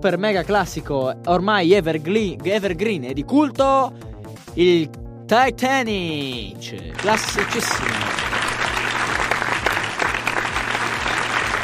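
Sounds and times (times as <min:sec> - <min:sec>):
speech: 0:00.0 - 0:08.2
audience applause during a standing ovation: 0:07.0 - 0:11.6.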